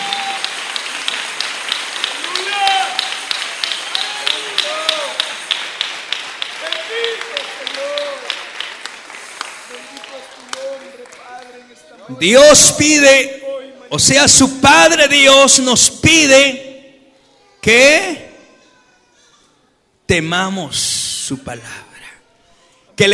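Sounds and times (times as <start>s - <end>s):
audience applause: 0.0s - 12.2s
speech: 12.2s - 16.6s, 17.6s - 18.2s, 20.1s - 21.9s, 23.0s - 23.1s.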